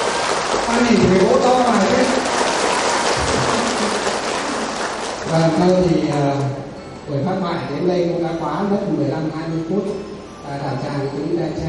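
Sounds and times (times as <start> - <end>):
audience applause: 0.0 - 6.2
speech: 0.7 - 2.4, 5.3 - 11.6.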